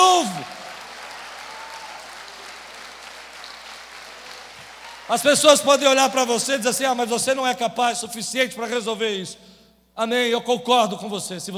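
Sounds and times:
audience applauding: 0.0s - 6.6s
speech: 5.1s - 11.5s.

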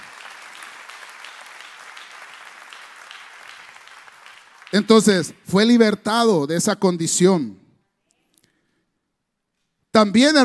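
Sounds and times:
audience applauding: 0.0s - 5.3s
speech: 4.7s - 7.6s, 10.0s - 10.4s.

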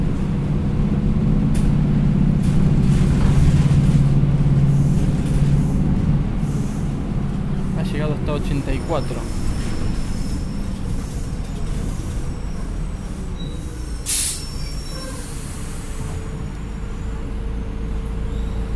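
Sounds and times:
city bus engine rumbling: 0.0s - 18.7s
speech: 8.5s - 9.4s
short sharp hiss of air: 14.1s - 16.1s.

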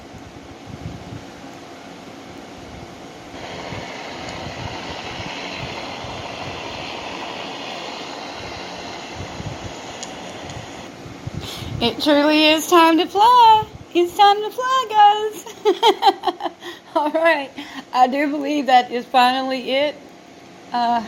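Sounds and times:
helicopter flying overhead: 3.4s - 10.9s
speech: 11.8s - 20.0s, 20.7s - 21.0s.

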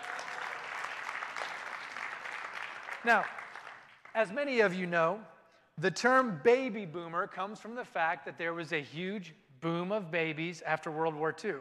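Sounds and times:
audience clapping: 0.0s - 4.7s
speech: 3.0s - 3.4s, 4.2s - 11.5s.

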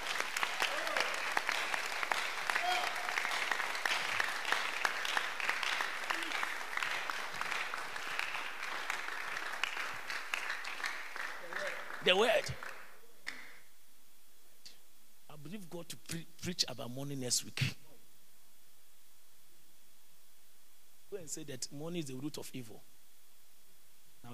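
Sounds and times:
audience applause: 0.0s - 13.4s
speech: 12.1s - 12.7s, 15.5s - 17.8s, 21.3s - 23.0s.

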